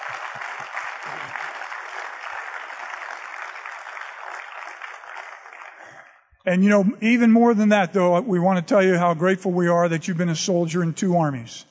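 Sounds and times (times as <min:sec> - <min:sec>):
round of applause: 0:00.0 - 0:06.4
speech: 0:06.4 - 0:11.6.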